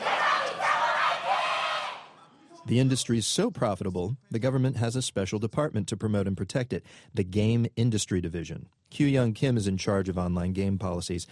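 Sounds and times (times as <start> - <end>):
Korean esports fans cheering at a live game competition: 0.0 - 2.6
speech: 2.7 - 11.3.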